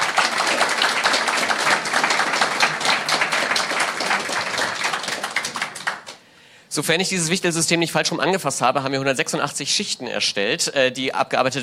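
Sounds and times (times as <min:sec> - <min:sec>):
audience applause: 0:00.0 - 0:06.2
speech: 0:06.8 - 0:11.6.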